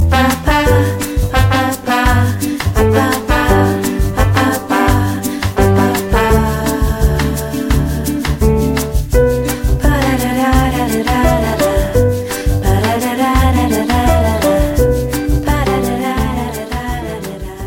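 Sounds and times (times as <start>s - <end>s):
bossa nova music: 0.0s - 17.6s.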